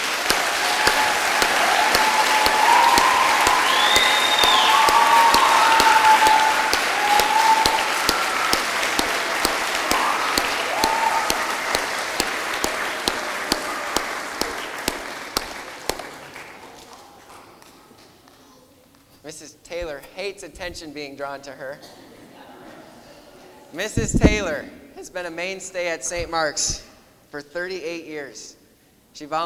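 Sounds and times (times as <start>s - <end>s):
cheers and voices: 0.0s - 17.2s
audience applause: 0.0s - 17.8s
speech: 20.6s - 22.1s, 23.7s - 28.6s, 29.2s - 29.4s.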